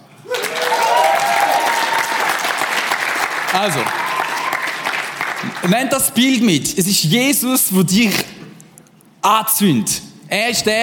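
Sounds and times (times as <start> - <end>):
faint voices or cheers: 0.2 - 2.6, 3.5 - 4.9
crowd applause: 0.2 - 5.7
speech: 3.6 - 4.0, 5.4 - 8.4, 9.2 - 10.8.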